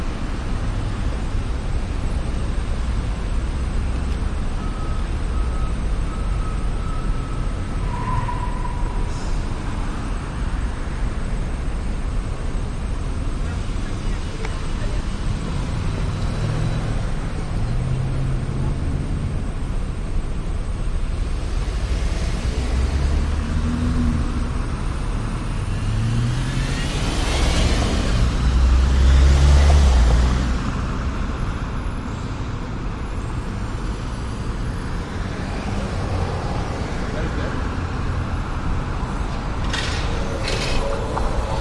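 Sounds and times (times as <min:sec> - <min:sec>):
night traffic of cars and buses hissing and rumbling in Vancouver: 0:00.0 - 0:41.5.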